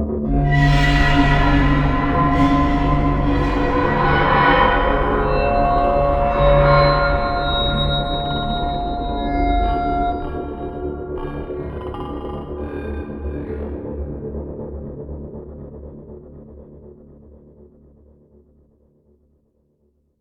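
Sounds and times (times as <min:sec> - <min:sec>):
horror creepy tension teaser music: 0:00.2 - 0:15.0.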